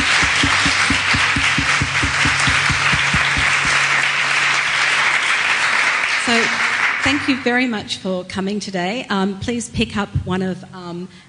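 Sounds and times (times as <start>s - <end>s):
crowd applauding: 0.0s - 7.6s
evenly paced claps: 0.0s - 7.6s
speech: 6.3s - 11.2s.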